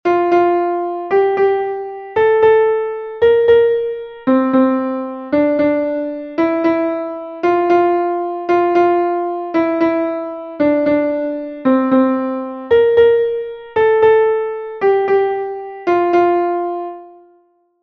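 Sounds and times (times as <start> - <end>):
scale in F major: 0.1 - 17.3.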